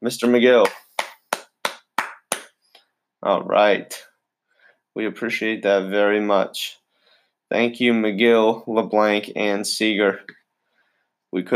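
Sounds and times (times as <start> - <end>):
speech: 0.0 - 0.8, 3.2 - 4.1, 5.0 - 6.8, 7.5 - 10.4, 11.3 - 11.5
slow deliberate hand claps: 0.2 - 2.8.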